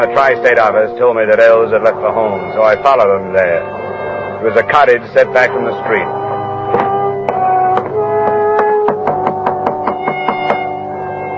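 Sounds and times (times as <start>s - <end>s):
speech: 0.0s - 3.8s, 4.4s - 6.8s
knocking on a cottage door: 6.7s - 10.7s.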